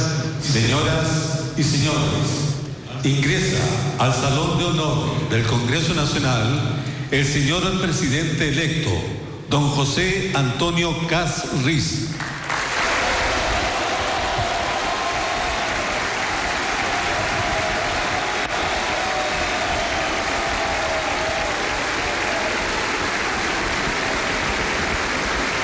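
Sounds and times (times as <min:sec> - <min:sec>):
speech: 0:00.6 - 0:12.3
thunderous applause in the Salón de Honor: 0:12.2 - 0:25.6.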